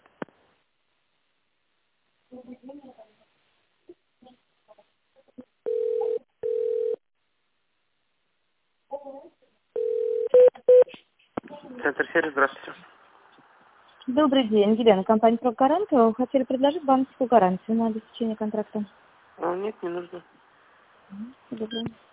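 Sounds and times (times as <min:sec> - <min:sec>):
speech: 0:02.3 - 0:03.1, 0:12.2 - 0:12.8, 0:14.2 - 0:20.3, 0:21.1 - 0:22.1
steady telephone line tone: 0:05.7 - 0:07.0, 0:09.8 - 0:10.8.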